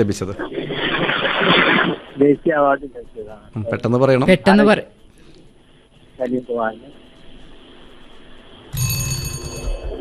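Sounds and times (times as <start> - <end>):
speech: 0.0 - 4.9, 6.2 - 7.0
quiz show time-up alarm buzzer: 8.7 - 10.0.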